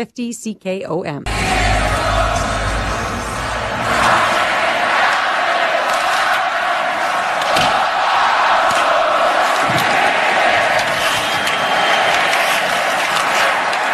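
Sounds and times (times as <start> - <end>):
speech: 0.0 - 2.4
hockey fans cheering in arena: 1.3 - 13.9.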